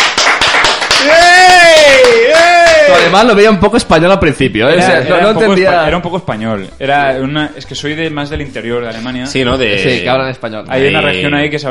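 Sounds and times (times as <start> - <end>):
applause: 0.0 - 3.3
speech: 2.9 - 11.6.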